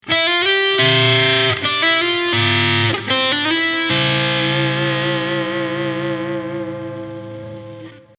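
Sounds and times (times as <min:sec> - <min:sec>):
distorted sixths: 0:00.7 - 0:07.8.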